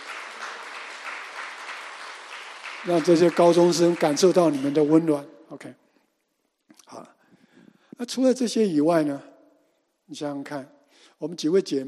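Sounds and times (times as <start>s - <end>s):
audience applause: 0.0s - 5.1s
speech: 2.8s - 5.8s, 8.0s - 9.3s, 10.1s - 11.8s.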